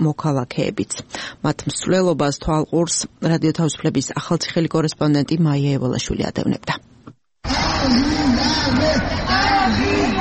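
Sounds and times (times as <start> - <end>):
speech: 0.0 - 10.2
crowd shouting and chanting at an Armenian genocide remembrance march in Samtskhe-Javakheti Georgia: 7.4 - 10.2.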